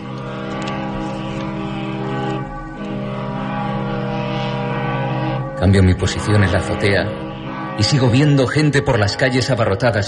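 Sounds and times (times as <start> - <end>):
ship horns as boats leave harbor: 0.0 - 10.0
speech: 5.6 - 7.2, 7.8 - 10.0.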